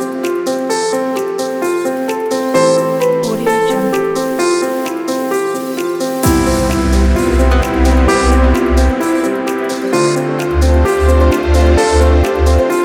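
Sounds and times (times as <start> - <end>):
inspirational corporate music kit: 0.0 - 12.8.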